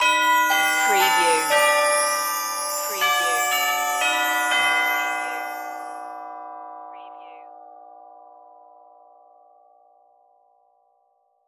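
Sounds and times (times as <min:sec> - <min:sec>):
synthesized bells outro melody: 0:00.0 - 0:07.5.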